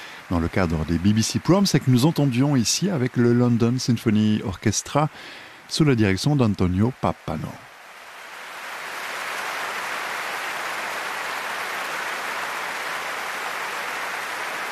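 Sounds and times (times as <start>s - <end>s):
warm concert audience applause: 0.0s - 14.7s
speech: 0.3s - 7.7s.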